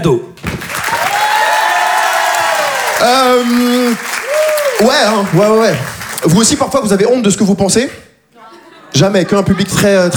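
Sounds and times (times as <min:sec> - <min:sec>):
speech: 0:00.0 - 0:00.3, 0:03.0 - 0:04.1, 0:04.8 - 0:08.1, 0:08.9 - 0:10.1
audience applauding and cheering: 0:00.6 - 0:06.8
laughter: 0:08.4 - 0:10.1.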